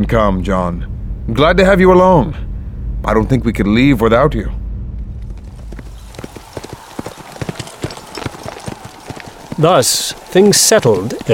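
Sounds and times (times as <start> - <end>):
speech: 0.0 - 4.6, 9.6 - 11.3
low rumbling background: 0.0 - 6.6
hooves of several walking horses clip-clopping: 5.2 - 11.3.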